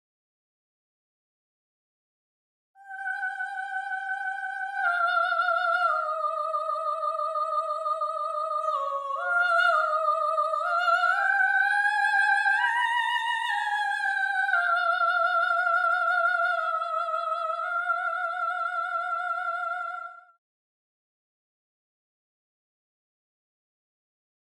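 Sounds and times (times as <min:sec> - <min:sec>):
soprano singing: 0:02.8 - 0:20.4.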